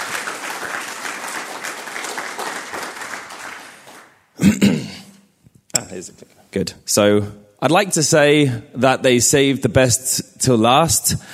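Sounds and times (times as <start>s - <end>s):
audience round of applause: 0.0s - 4.2s
speech: 6.0s - 11.3s.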